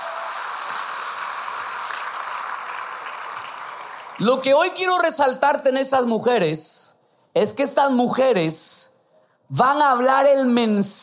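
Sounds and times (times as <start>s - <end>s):
audience applause: 0.0s - 4.4s
speech: 4.2s - 8.9s, 9.5s - 11.0s.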